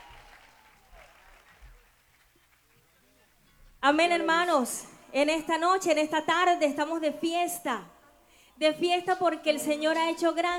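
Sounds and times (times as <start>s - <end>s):
loud applause: 0.0s - 2.6s
speech: 3.8s - 7.9s, 8.6s - 10.5s.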